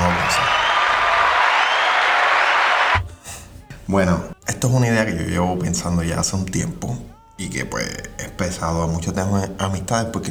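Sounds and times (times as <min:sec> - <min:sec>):
applause sound effect: 0:00.0 - 0:03.0
speech: 0:03.9 - 0:10.2.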